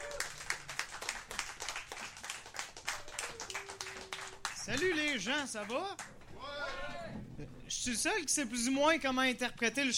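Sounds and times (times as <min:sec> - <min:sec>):
audience applause: 0:00.0 - 0:06.1
speech: 0:04.7 - 0:09.9.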